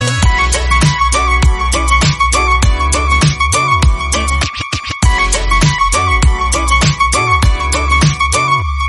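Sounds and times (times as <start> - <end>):
instrumental background music: 0.0 - 8.8.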